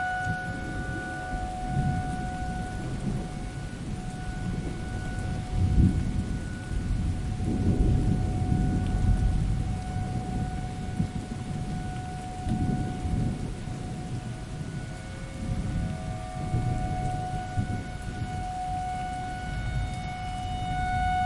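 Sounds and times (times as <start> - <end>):
thunderstorm: 0.0 - 21.2
tornado sirens: 0.0 - 21.2.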